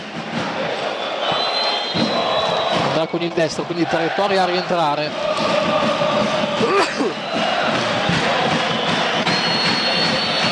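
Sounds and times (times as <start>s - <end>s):
football fans chanting in stadium: 0.0s - 10.4s
whistle: 1.0s - 3.2s, 8.5s - 10.4s
speech: 3.0s - 5.9s.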